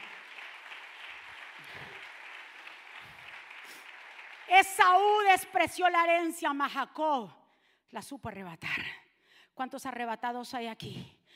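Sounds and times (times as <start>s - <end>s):
audience applause: 0.0s - 5.1s
speech: 4.5s - 9.0s, 9.6s - 11.3s.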